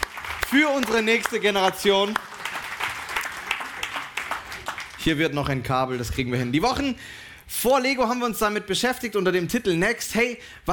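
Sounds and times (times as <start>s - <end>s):
audience applause: 0.0s - 5.6s
speech: 0.5s - 2.3s, 5.0s - 10.7s.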